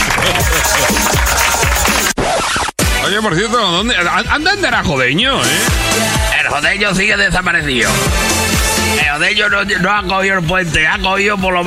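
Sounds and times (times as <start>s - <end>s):
audience applause: 0.0s - 2.2s
speech: 3.1s - 11.6s.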